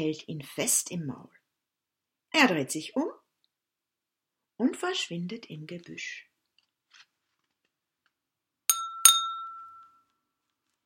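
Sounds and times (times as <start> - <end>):
speech: 0.0 - 1.4, 2.3 - 3.2, 4.6 - 6.3
dishes clinking: 8.7 - 10.0.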